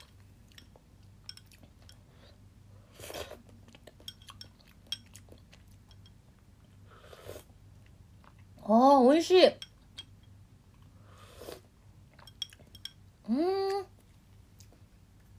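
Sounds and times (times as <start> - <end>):
low hum: 0.0 - 15.3
cutlery clinking on dishes while eating soup: 4.0 - 5.2, 12.2 - 13.0
speech: 8.7 - 9.6.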